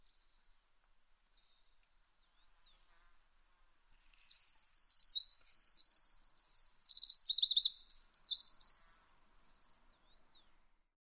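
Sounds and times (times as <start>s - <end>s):
bird twittering: 4.0s - 9.8s.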